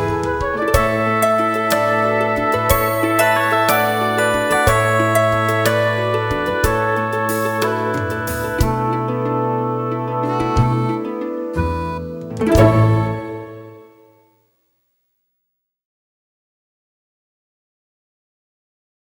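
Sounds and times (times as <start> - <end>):
backing track: 0.0 - 14.0.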